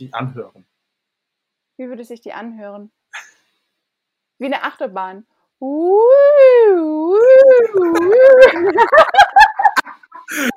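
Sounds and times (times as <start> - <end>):
speech: 0.0 - 0.7, 1.8 - 3.3, 4.4 - 9.4, 10.3 - 10.5
voice imitating a rising and falling siren: 5.6 - 8.6
laughter: 7.4 - 10.5.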